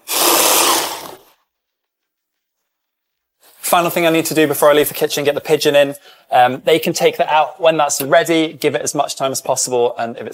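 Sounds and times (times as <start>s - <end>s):
blender blending chocolate cake: 0.0s - 1.2s
speech: 3.7s - 10.3s.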